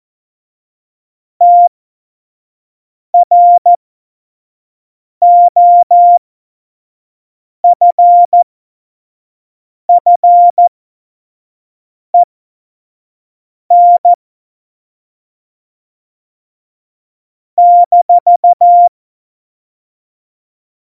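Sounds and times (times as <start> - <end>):
morse code CW: 1.4 - 1.7, 5.2 - 6.2, 7.7 - 8.5, 9.9 - 10.7, 13.7 - 14.1, 17.6 - 18.9.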